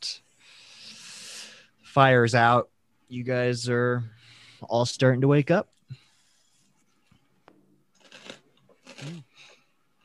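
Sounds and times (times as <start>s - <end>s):
speech: 2.0s - 5.8s
person biting into an apple: 7.9s - 9.7s.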